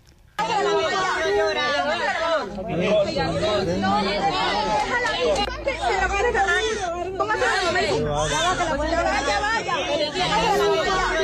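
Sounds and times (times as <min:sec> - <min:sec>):
rescuers' voices chattering: 0:00.4 - 0:11.2
newborn baby crying in building ruins: 0:07.9 - 0:09.4.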